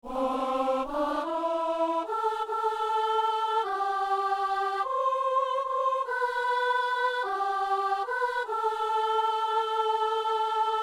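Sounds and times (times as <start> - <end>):
soprano singing: 0.0 - 10.8.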